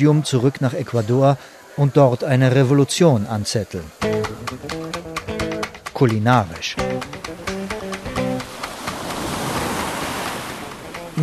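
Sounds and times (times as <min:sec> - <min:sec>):
speech: 0:00.0 - 0:04.2, 0:06.0 - 0:07.1
sea waves at a beach: 0:03.8 - 0:11.2.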